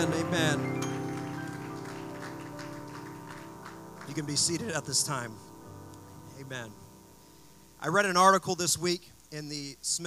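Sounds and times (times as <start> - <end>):
speech: 0.0 - 0.8, 4.2 - 5.5, 6.4 - 6.8, 7.8 - 10.0
audience clapping hands: 0.0 - 5.2.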